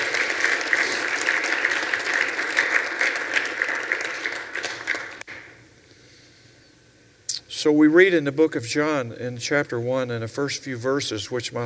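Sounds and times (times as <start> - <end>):
audience clapping hands: 0.0 - 5.4
speech: 7.6 - 11.6.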